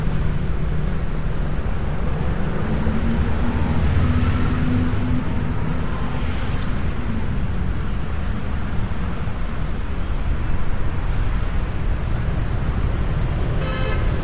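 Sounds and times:
airport traffic: 0.0 - 14.2.

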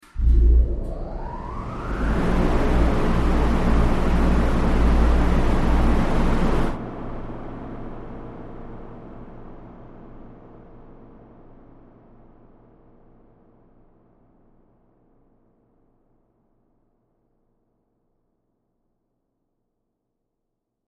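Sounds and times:
large wind turbine powering up in a factory: 0.0 - 6.8.

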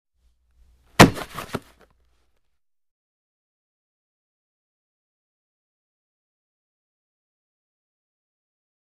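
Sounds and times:
heavy football grab: 1.0 - 1.8.

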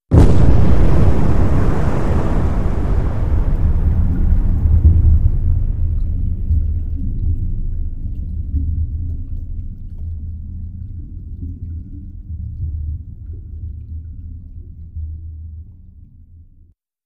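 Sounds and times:
underwater explosions: 0.0 - 8.9.

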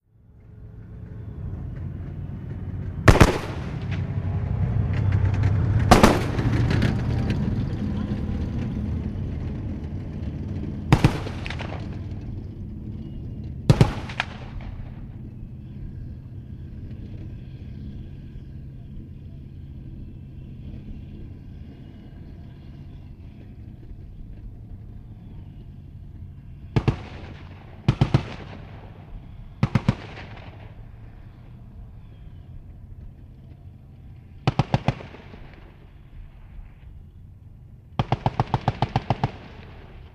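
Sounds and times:
armored personnel carrier driving outdoors: 0.0 - 40.1
dual 50 caliber machine gun firing: 3.1 - 4.0, 5.8 - 7.0, 10.9 - 12.0, 13.7 - 14.7, 26.8 - 28.9, 29.6 - 30.8, 34.4 - 35.7, 38.0 - 40.0.

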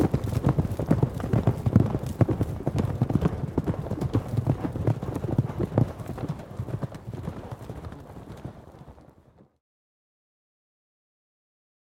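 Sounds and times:
horse galloping: 0.0 - 9.6.

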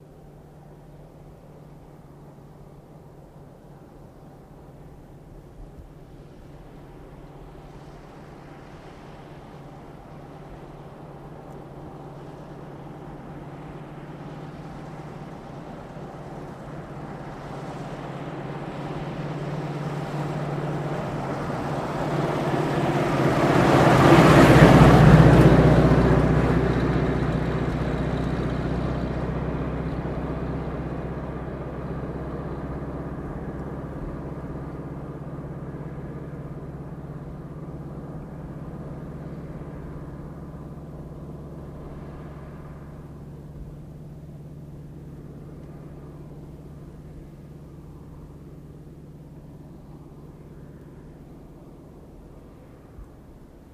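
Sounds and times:
antique Buick coupe passing slowly: 0.0 - 53.7.

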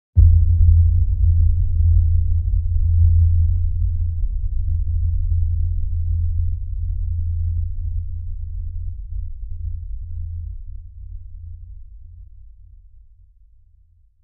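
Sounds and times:
low underwater hit: 0.2 - 6.8.

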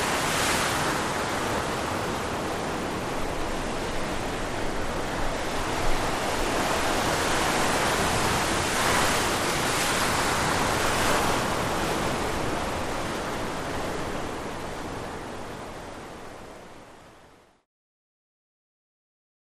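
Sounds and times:
Mediterranean wave crashing: 0.0 - 14.7.

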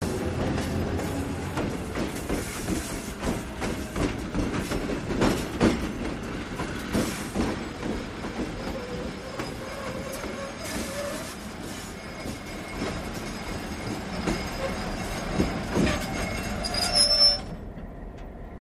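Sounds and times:
diesel locomotive brakes: 1.0 - 18.3.

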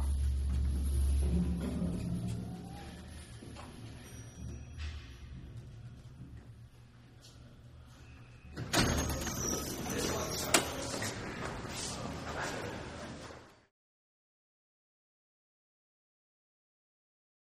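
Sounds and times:
old style elevator: 0.0 - 13.6.

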